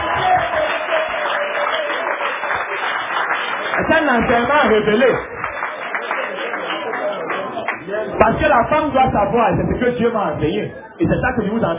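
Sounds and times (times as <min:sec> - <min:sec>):
audience applause: 0:00.0 - 0:08.1
speech: 0:04.1 - 0:05.3, 0:08.2 - 0:11.7.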